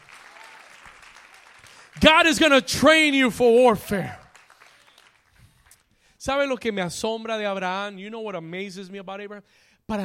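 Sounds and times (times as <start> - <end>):
loud applause: 0.0 - 5.9
speech: 2.0 - 4.2, 6.2 - 10.0.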